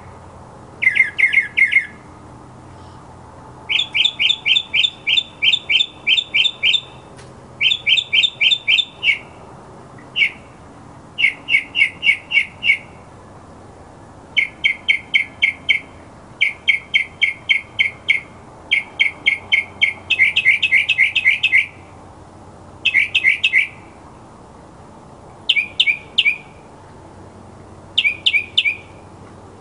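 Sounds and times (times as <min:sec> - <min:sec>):
mockingbird song: 0:00.8 - 0:02.0, 0:03.7 - 0:07.0, 0:07.6 - 0:09.3, 0:10.0 - 0:10.4, 0:11.2 - 0:12.9, 0:14.4 - 0:21.8, 0:22.8 - 0:23.8, 0:25.5 - 0:26.5, 0:28.0 - 0:29.0.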